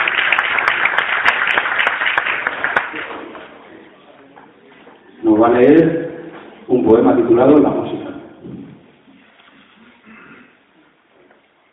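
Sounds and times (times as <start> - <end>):
audience applause: 0.0 - 3.6
speech: 5.4 - 6.0, 6.9 - 7.9.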